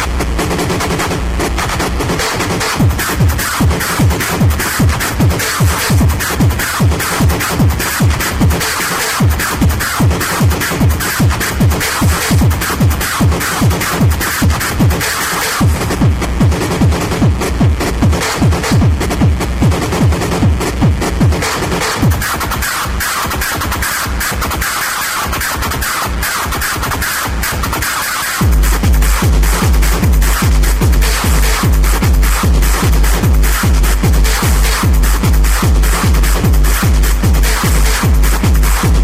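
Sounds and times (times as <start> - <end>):
techno music: 0.0 - 39.0.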